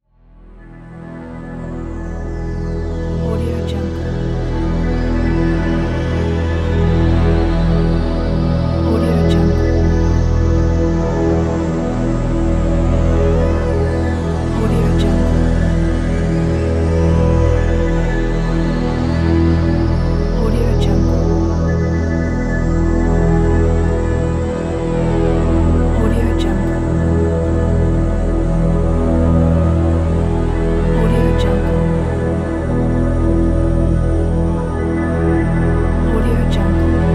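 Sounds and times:
drone: 0.1 - 37.1.

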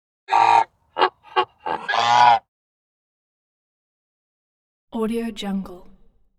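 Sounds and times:
goose honking: 0.3 - 2.4.

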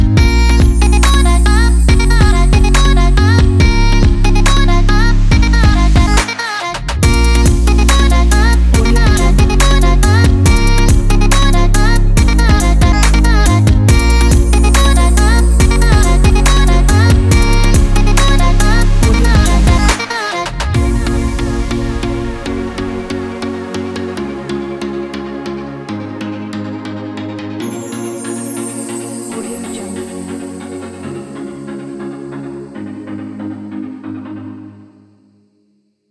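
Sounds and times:
pop beat: 0.0 - 24.5.

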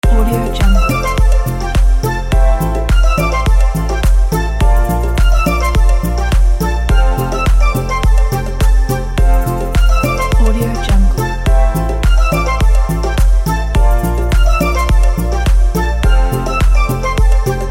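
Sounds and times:
tropical music loop: 0.0 - 17.7.

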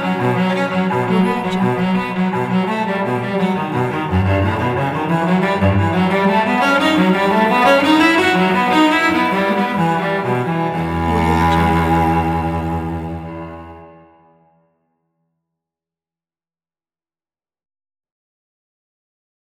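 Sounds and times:
virtuoso cello playing: 0.0 - 14.5.

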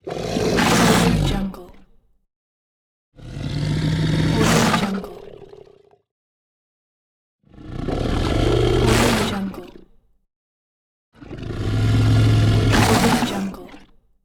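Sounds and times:
beast growl: 0.0 - 1.6, 3.2 - 6.0, 7.5 - 9.6, 11.2 - 13.6.

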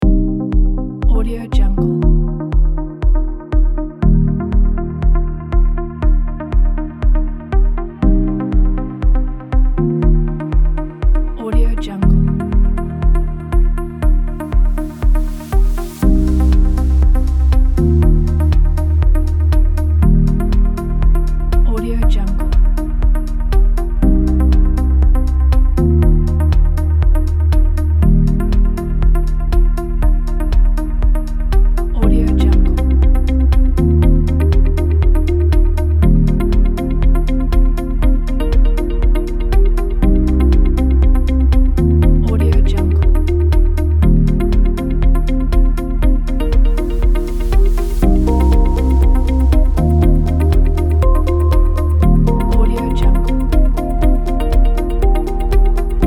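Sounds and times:
minimal ambient electronic music: 0.0 - 56.0.

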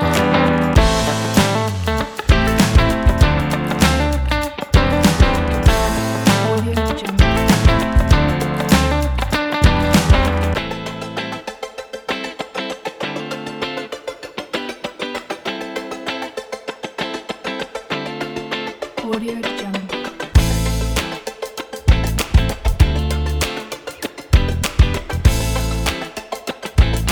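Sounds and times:
soul drum kit: 0.2 - 10.9, 20.4 - 21.1, 21.9 - 23.5, 24.3 - 26.1, 26.8 - 27.0.

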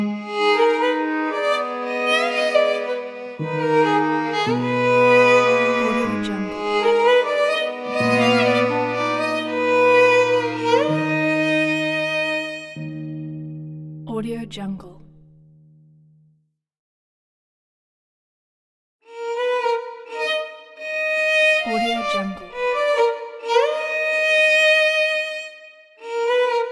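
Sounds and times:
Jewish sad melody for violin: 0.0 - 13.8, 19.1 - 26.7.

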